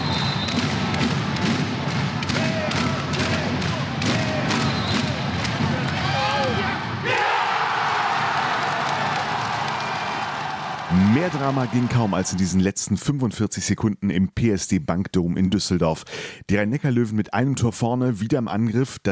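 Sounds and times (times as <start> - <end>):
rhythmic clapping and thudding: 0.0 - 6.1, 8.1 - 12.0
indoor handball crowd roaring and cheering at a last-second goal: 0.0 - 12.5
speech: 11.3 - 19.1.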